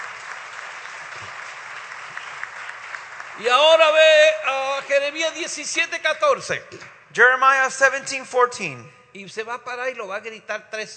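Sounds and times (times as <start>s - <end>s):
crowd applauding: 0.0s - 5.4s
speech: 3.4s - 10.9s.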